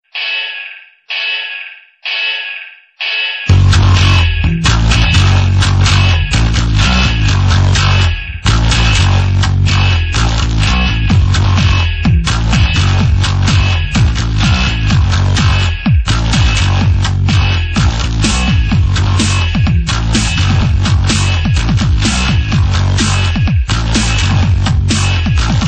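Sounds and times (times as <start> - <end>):
grunge ringtone: 0.0 - 25.6.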